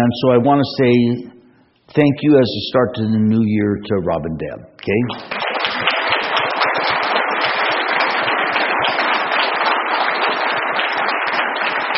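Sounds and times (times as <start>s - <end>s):
speech: 0.0s - 1.3s, 1.9s - 5.4s
audience clapping: 4.8s - 11.9s.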